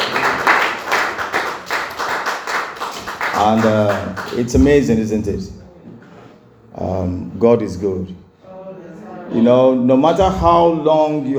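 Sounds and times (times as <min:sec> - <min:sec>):
audience clapping hands: 0:00.0 - 0:05.0
speech: 0:03.4 - 0:05.6, 0:06.8 - 0:08.2, 0:09.3 - 0:11.3.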